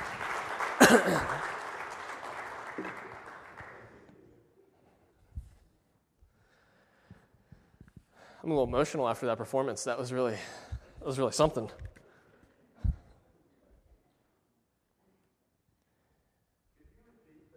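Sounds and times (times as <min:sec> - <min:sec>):
audience applause: 0:00.0 - 0:04.1
speech: 0:00.9 - 0:01.5, 0:08.4 - 0:12.0.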